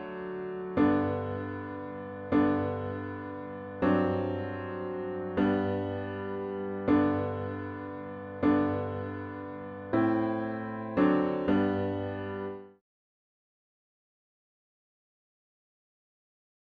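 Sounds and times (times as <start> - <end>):
piano playing children's song: 0.0 - 12.8.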